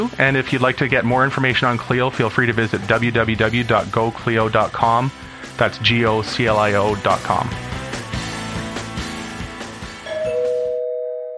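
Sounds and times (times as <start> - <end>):
speech: 0.0 - 7.7
two-tone doorbell chime: 10.0 - 11.3.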